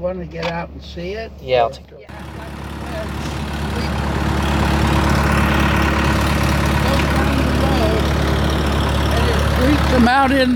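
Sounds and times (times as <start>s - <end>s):
speech: 0.0s - 4.0s, 9.6s - 10.5s
orchard tree shaker and sweeper engine idling: 2.1s - 10.5s.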